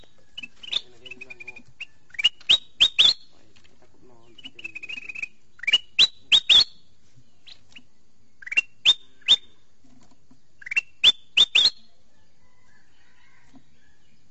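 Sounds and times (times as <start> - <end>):
sooty-headed bulbul whistled calls: 0.0 - 3.4, 4.1 - 9.6, 10.6 - 12.0.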